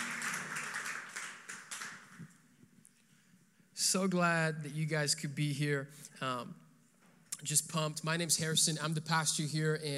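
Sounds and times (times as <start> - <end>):
audience clapping hands: 0.0 - 2.5
speech: 3.9 - 6.6, 7.4 - 9.9.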